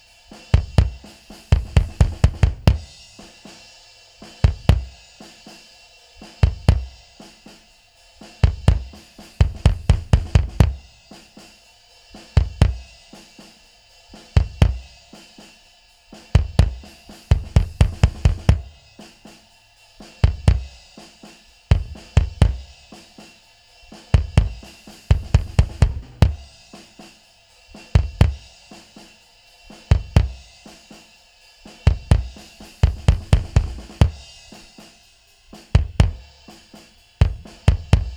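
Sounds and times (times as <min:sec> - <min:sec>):
kick drum: 0:00.0 - 0:03.3, 0:04.3 - 0:05.2, 0:06.3 - 0:07.5, 0:08.3 - 0:11.4, 0:12.2 - 0:13.5, 0:14.1 - 0:15.1, 0:16.2 - 0:19.0, 0:20.0 - 0:21.0, 0:21.7 - 0:23.0, 0:23.9 - 0:26.9, 0:27.8 - 0:28.8, 0:29.7 - 0:30.6, 0:31.7 - 0:34.8, 0:35.5 - 0:38.1
drums: 0:00.0 - 0:38.1.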